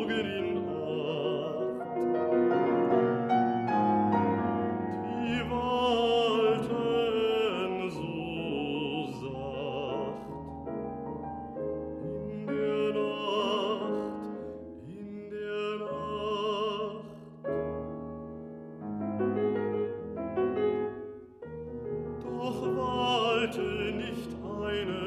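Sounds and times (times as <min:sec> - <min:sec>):
baritone singing night songs: 0:00.0 - 0:11.0, 0:11.6 - 0:17.6, 0:22.1 - 0:25.0
piano accompaniment: 0:00.0 - 0:25.0.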